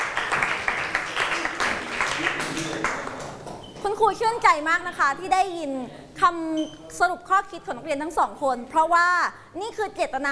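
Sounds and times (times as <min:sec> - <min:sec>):
applause for two students: 0:00.0 - 0:03.6
speech: 0:04.0 - 0:10.3.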